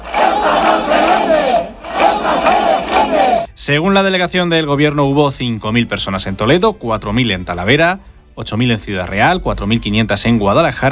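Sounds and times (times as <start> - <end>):
protest crowd shouting in the streets of Castilla-La Mancha: 0.0 - 3.5
speech: 3.7 - 10.9.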